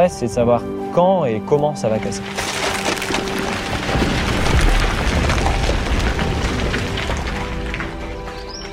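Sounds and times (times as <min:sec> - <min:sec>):
speech: 0:00.0 - 0:02.5
deep rumbling noise from unstable cliff rock: 0:02.2 - 0:08.7.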